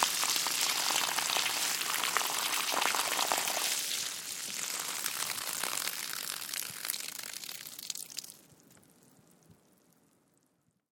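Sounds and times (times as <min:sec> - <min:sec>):
water flowing from garden hose onto grass with run-off: 0:00.0 - 0:08.4.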